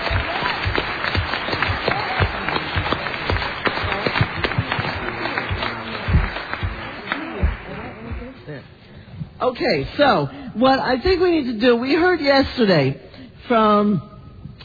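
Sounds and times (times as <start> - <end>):
audience applause: 0.0 - 8.6
speech: 9.5 - 14.1.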